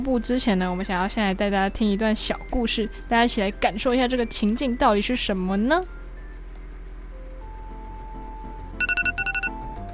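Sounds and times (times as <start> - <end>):
speech: 0.0 - 6.0
alarm clock ringing: 8.8 - 9.9.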